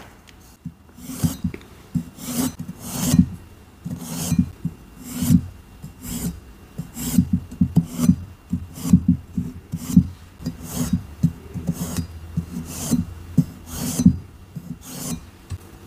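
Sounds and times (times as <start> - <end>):
plain gym chalk being cut and shaved: 0.9 - 3.3, 3.9 - 15.3.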